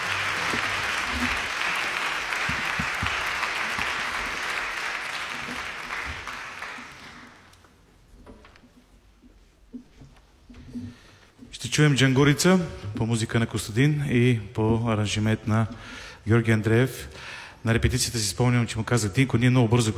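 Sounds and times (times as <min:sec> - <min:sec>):
concert audience applause: 0:00.0 - 0:07.6
speech: 0:11.8 - 0:19.9.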